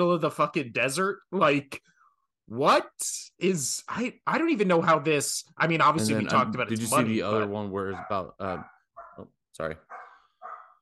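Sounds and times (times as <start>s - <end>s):
speech: 0.0s - 1.9s, 2.5s - 10.0s
dog barking: 6.9s - 10.7s.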